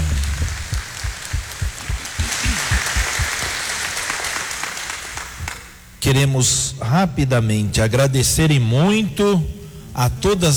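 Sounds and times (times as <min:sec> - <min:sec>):
applause: 0:00.0 - 0:05.8
speech: 0:06.1 - 0:10.5.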